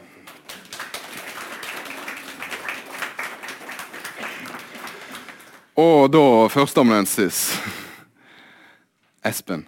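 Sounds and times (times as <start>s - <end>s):
audience applause: 0.0s - 5.7s
speech: 5.8s - 7.8s, 9.3s - 9.6s.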